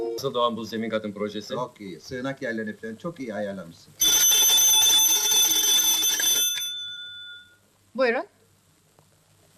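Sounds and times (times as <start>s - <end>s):
speech: 0.2s - 4.2s, 8.0s - 8.4s
telephone ringing: 4.0s - 7.6s.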